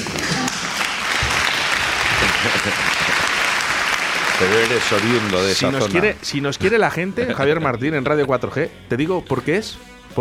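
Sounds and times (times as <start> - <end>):
crowd applause: 0.0 - 6.2
laughter: 1.8 - 3.8
speech: 4.4 - 10.1.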